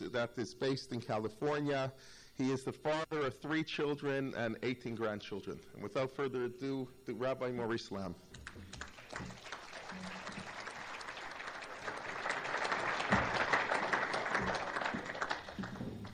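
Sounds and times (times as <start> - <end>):
speech: 0.0 - 9.3
audience applauding: 8.4 - 16.1.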